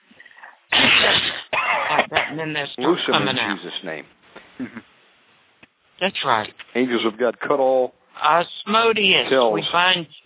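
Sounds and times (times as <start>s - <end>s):
deep cough: 0.7s - 2.4s
speech: 2.3s - 4.9s, 6.0s - 10.2s.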